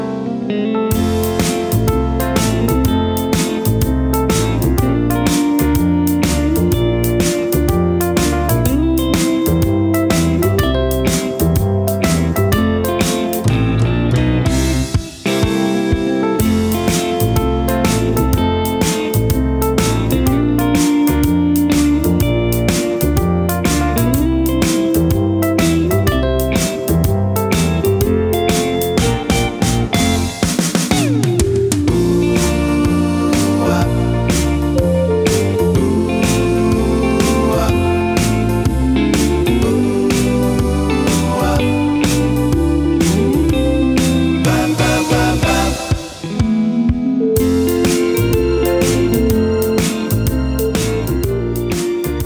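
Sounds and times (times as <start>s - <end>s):
instrumental melody: 0.1s - 52.2s
background vocals: 32.3s - 46.4s.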